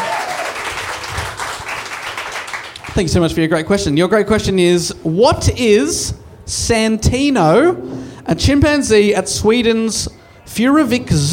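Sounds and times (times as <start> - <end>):
audience applause: 0.0 - 3.0
speech: 3.0 - 11.3.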